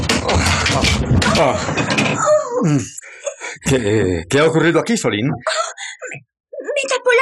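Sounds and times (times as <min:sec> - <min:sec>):
wooden door forced open with heavy thuds and splintering: 0:00.0 - 0:02.4
brief creaking groan: 0:00.0 - 0:03.0
speech: 0:00.8 - 0:01.8, 0:02.6 - 0:03.0, 0:03.7 - 0:05.7.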